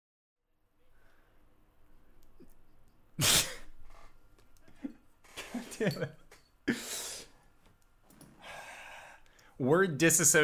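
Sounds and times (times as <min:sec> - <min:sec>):
sneeze: 0:03.2 - 0:03.8
speech: 0:05.8 - 0:06.2, 0:09.6 - 0:10.4.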